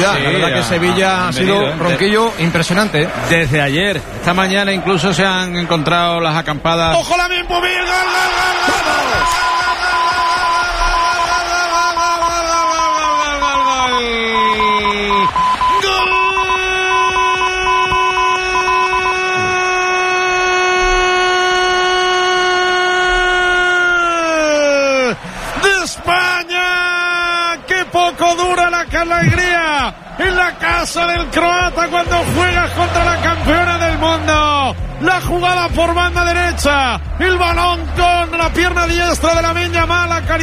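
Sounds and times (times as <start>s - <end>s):
speech: 0.0s - 9.6s, 28.4s - 40.4s
Croatian fans in stadium stands: 0.0s - 40.4s.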